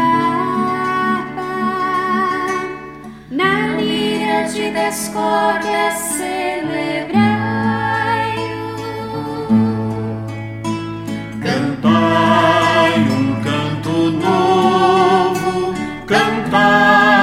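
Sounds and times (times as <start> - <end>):
person singing: 0.0 - 10.1, 11.4 - 17.2.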